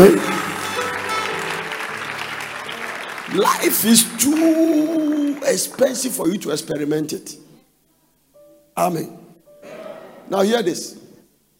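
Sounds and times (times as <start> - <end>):
speech: 0.0 - 0.3, 3.3 - 7.5, 8.8 - 9.2, 10.3 - 11.0
crowd clapping: 0.0 - 6.6.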